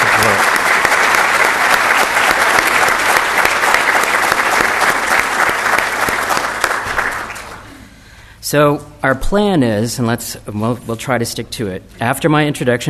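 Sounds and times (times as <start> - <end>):
audience applauding: 0.0 - 7.8
speech: 8.5 - 12.8.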